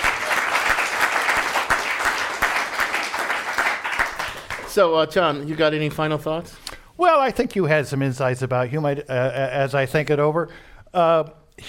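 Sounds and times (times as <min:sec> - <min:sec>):
live audience applauding: 0:00.0 - 0:05.0
speech: 0:04.8 - 0:11.6.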